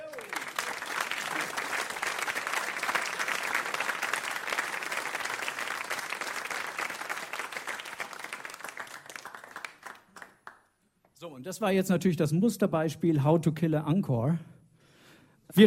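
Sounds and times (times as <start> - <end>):
large crowd applause: 0.0 - 10.6
speech: 11.4 - 14.5.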